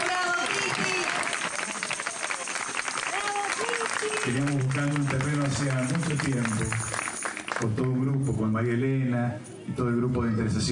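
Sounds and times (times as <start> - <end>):
audience applause: 0.0 - 8.1
speech: 4.3 - 7.0, 7.6 - 10.7.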